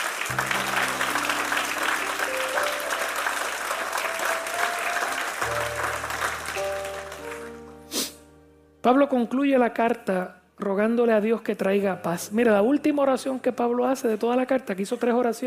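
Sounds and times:
audience applause: 0.0s - 7.8s
speech: 8.8s - 15.4s.

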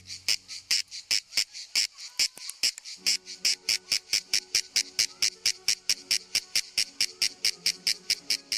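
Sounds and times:
shrill song of male insects: 0.0s - 8.5s.

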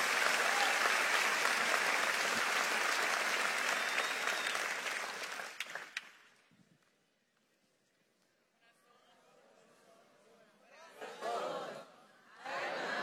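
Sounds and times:
audience applauding: 0.0s - 6.4s
laughter: 11.0s - 13.0s.

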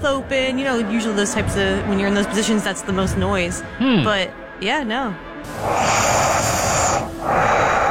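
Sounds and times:
speech: 0.0s - 6.0s
heavy nasal breathing while sleeping: 5.4s - 7.8s.

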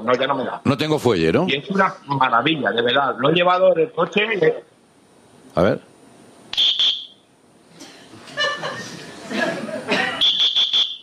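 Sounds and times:
speech: 0.0s - 4.7s, 5.5s - 5.9s
electronic whistle blowing: 6.5s - 7.3s, 10.2s - 11.0s
laughter: 7.8s - 10.3s.

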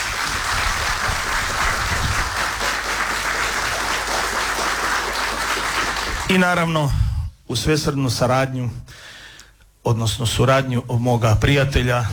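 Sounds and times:
audience applause at a live music event: 0.0s - 6.4s
speech: 6.3s - 9.1s, 9.8s - 12.1s.

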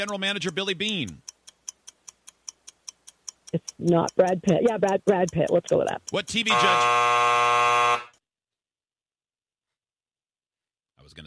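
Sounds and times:
speech: 0.0s - 1.3s, 3.5s - 8.1s, 11.1s - 11.2s
game show buzzer: 6.4s - 8.1s.

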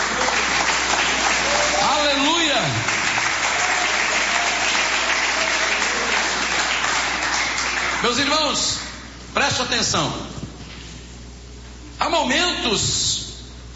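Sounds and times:
audience applause: 0.0s - 8.4s
speech: 8.1s - 8.8s, 9.4s - 10.4s, 12.0s - 13.3s.

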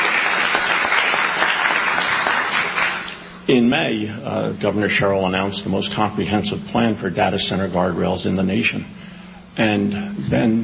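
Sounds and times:
audience applauding: 0.0s - 3.3s
speech: 3.5s - 9.0s, 9.6s - 10.6s.

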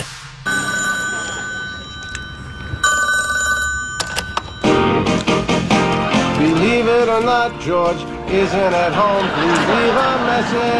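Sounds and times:
telephone ringing with electronic tone: 0.5s - 5.8s
laughter: 0.8s - 1.8s, 8.3s - 10.7s
speech: 7.0s - 10.7s.

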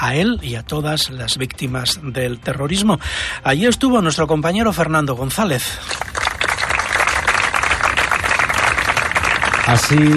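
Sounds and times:
speech: 0.0s - 6.2s, 9.7s - 10.1s
crowd applause at memorial ceremony: 5.8s - 10.1s.

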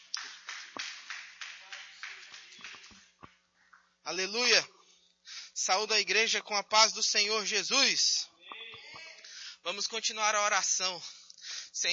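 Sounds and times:
audience clapping in rhythm: 0.0s - 3.9s
speech: 4.1s - 4.8s, 5.6s - 8.3s, 9.7s - 11.2s.

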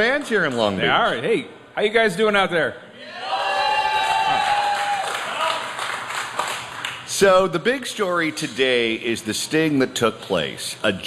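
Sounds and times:
speech: 0.0s - 3.2s, 7.2s - 11.0s
audience applause: 3.7s - 7.1s.

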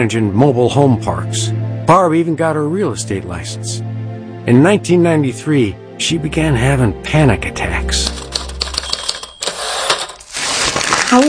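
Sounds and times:
speech: 0.0s - 8.3s
typing lease documents: 8.0s - 10.2s.

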